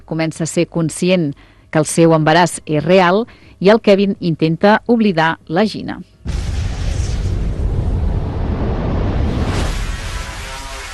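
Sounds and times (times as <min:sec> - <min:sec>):
speech: 0:00.1 - 0:06.2
bomb explosion blast: 0:06.2 - 0:10.9.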